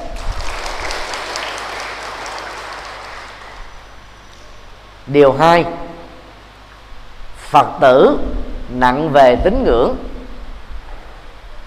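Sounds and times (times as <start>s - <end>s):
audience applause: 0.2s - 3.7s
speech: 5.1s - 5.8s, 7.5s - 10.1s.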